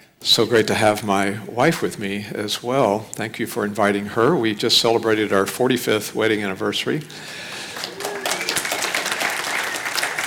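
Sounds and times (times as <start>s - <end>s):
speech: 0.2s - 7.4s
audience applauding: 7.3s - 10.2s.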